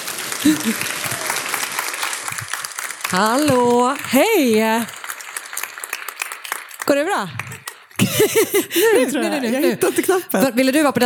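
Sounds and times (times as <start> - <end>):
audience applause: 0.0 - 10.1
speech: 0.4 - 1.1, 3.1 - 5.0, 6.9 - 7.4, 8.0 - 11.0
laughter: 0.4 - 1.4, 7.4 - 10.4.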